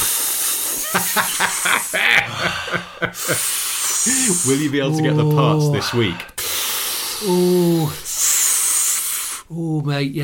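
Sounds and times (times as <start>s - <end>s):
voice imitating hissing air leak in car door: 0.0s - 2.0s, 3.2s - 4.8s, 6.0s - 9.6s
laughter: 0.8s - 6.2s
speech: 1.2s - 6.3s, 7.2s - 8.1s, 9.5s - 10.2s.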